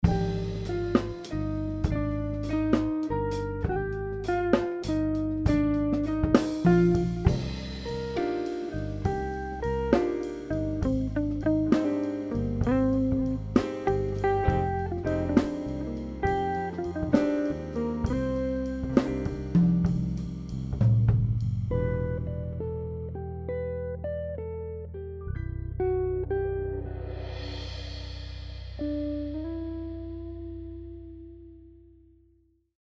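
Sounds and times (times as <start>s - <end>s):
jazz music: 0.0s - 23.8s, 25.8s - 31.0s.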